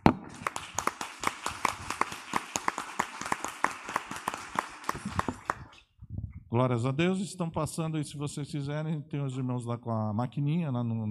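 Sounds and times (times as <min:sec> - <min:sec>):
audience applause: 0:00.0 - 0:05.8
speech: 0:06.5 - 0:11.0.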